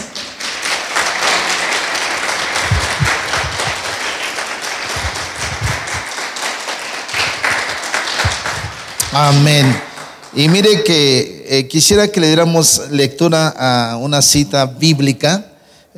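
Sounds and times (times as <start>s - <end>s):
audience applause: 0.0s - 10.8s
low thumps: 2.6s - 4.0s, 4.8s - 6.1s, 7.2s - 9.8s
speech: 9.2s - 15.5s.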